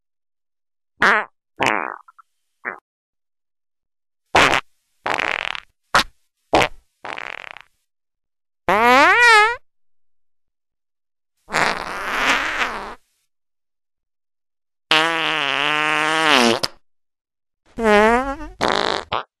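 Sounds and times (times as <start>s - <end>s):
loud farts: 1.0s - 2.8s, 4.4s - 7.7s, 8.7s - 9.6s, 11.5s - 13.0s, 14.9s - 16.8s, 17.8s - 19.3s.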